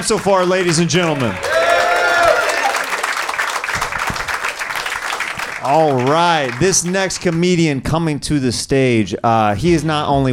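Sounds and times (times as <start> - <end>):
speech: 0.0 - 1.5, 5.6 - 10.3
crowd noise at a comedy show: 0.0 - 7.6
audience clapping at a comedy show after a comedian's set: 0.0 - 7.8.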